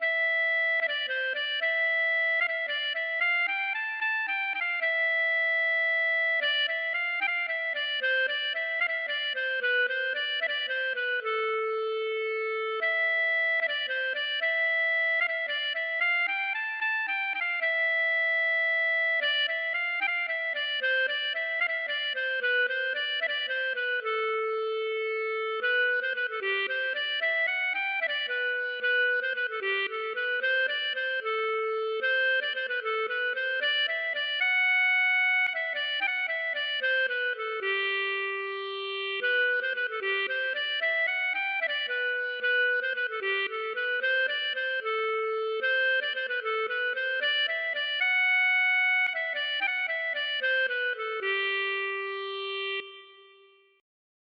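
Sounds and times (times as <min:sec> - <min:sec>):
waltz music: 0:00.0 - 0:53.3.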